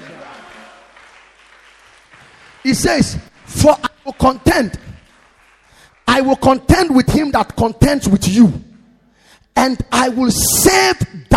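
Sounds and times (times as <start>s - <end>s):
audience clapping: 0.0s - 7.6s
speech: 2.6s - 4.9s, 6.2s - 8.7s, 9.6s - 11.2s.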